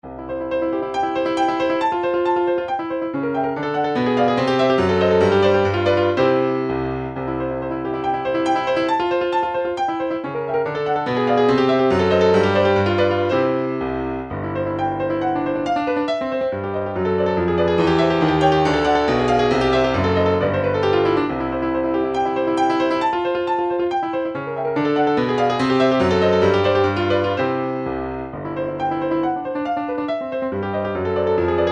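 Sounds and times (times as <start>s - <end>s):
MIDI melody: 0.0s - 31.7s.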